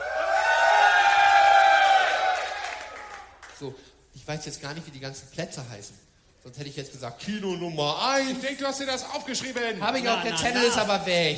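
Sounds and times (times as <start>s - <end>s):
festival crowd cheering and shouting: 0.0s - 3.2s
speech: 3.6s - 11.3s.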